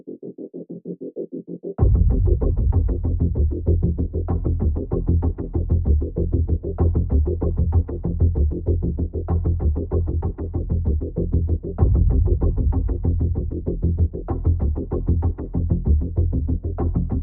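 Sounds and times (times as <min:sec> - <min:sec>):
rhythm track: 0:01.8 - 0:17.2.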